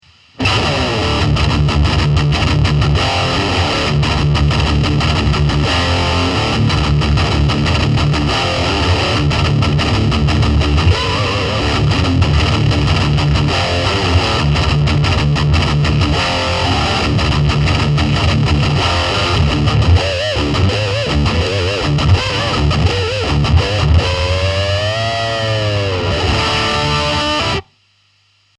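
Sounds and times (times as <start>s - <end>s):
high-gain guitar amp tone on red channel: 0.0s - 28.5s.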